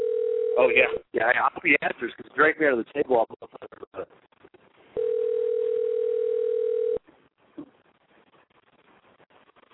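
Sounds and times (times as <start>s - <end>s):
electronic telephone dial tone: 0.0s - 0.6s, 5.0s - 7.0s
speech: 0.6s - 4.2s.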